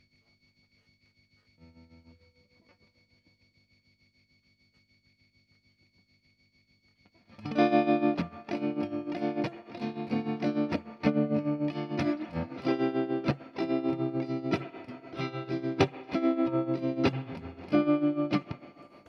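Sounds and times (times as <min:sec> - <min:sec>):
guitar: 0:07.2 - 0:19.0.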